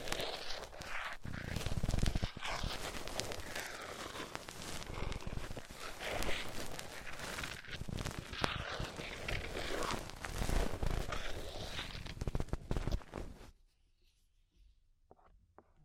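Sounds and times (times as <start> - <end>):
ear cleaning crackling and crunching: 0.0 - 13.4
scraping and crunching: 0.0 - 13.5.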